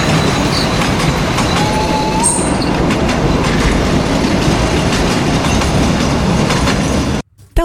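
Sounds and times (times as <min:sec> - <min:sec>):
brief metallic squeal of the train: 0:00.0 - 0:02.8
old train rumbling and clattering over the rails: 0:00.0 - 0:07.2.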